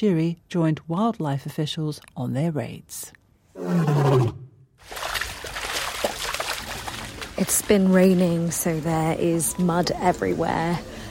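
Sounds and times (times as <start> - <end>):
speech: 0.0 - 5.1, 7.4 - 11.0
lion roaring: 3.6 - 4.6.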